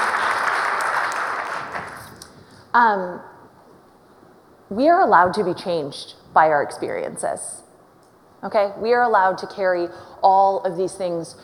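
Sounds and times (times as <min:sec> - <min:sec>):
audience applause: 0:00.0 - 0:02.1
speech: 0:02.8 - 0:03.3, 0:04.7 - 0:07.6, 0:08.4 - 0:11.4.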